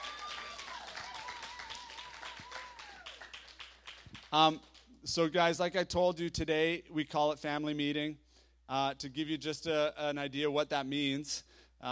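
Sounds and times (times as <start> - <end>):
round of applause: 0.0 - 4.9
speech: 4.3 - 11.8.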